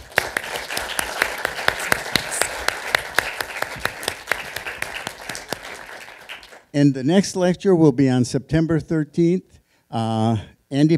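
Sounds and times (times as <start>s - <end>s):
big round of applause: 0.0s - 6.7s
speech: 6.8s - 10.9s.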